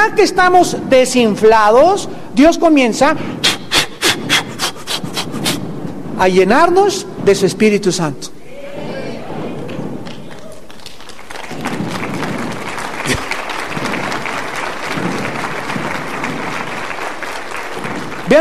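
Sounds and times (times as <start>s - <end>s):
speech: 0.1s - 3.5s, 6.2s - 8.4s
audience applauding: 9.5s - 18.3s.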